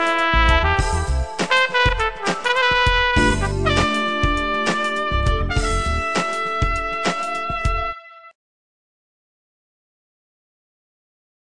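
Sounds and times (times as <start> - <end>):
funk chords: 0.0 - 8.0
trumpet: 0.0 - 8.4.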